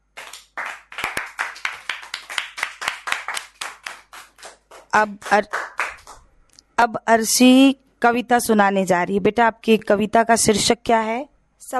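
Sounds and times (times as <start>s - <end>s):
group clapping for a child's story: 0.0s - 6.3s
speech: 5.0s - 5.6s, 6.8s - 11.7s.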